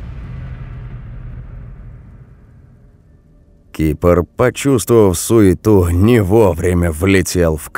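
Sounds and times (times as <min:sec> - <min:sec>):
grenade explosion: 0:00.0 - 0:03.6
speech: 0:03.8 - 0:07.7.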